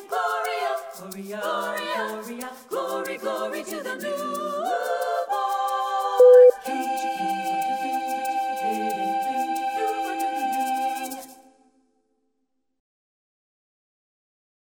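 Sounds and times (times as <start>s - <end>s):
a cappella singing: 0.0s - 11.7s.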